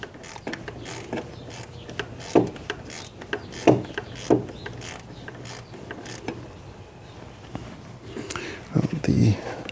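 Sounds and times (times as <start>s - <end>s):
ratcheting from work on a loose belt tensioner pulley bolt: 0.0s - 6.4s
sharp knocks: 3.2s - 4.6s.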